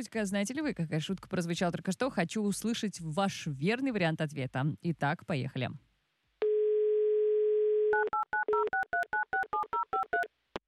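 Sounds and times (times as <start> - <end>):
speech: 0.0 - 5.9
telephone dial tone: 6.4 - 10.2.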